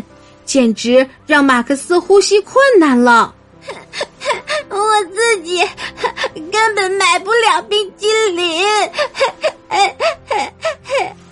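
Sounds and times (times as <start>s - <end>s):
speech: 0.5s - 3.8s, 4.9s - 11.2s
young boy sobbing: 3.6s - 11.2s.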